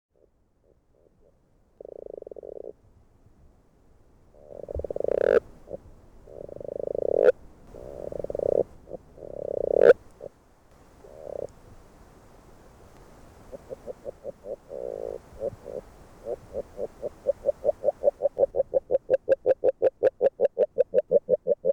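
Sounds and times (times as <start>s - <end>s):
agile frog call in Hungary: 0.2s - 2.8s, 4.4s - 10.3s, 11.0s - 11.5s, 13.4s - 21.7s.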